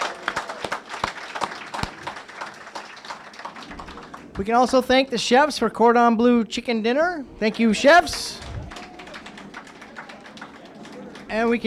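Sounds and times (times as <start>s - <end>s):
audience applause: 0.0s - 4.5s, 7.4s - 11.6s
speech: 4.4s - 8.4s, 11.3s - 11.6s.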